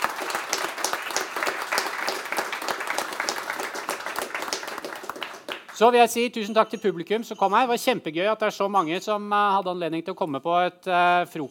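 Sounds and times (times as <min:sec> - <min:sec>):
audience applause: 0:00.0 - 0:05.8
speech: 0:05.8 - 0:11.4.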